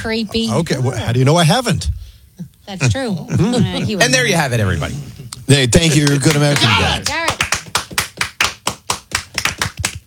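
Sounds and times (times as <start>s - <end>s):
speech: 0.0s - 2.0s, 2.7s - 7.3s
people clapping: 5.8s - 10.0s.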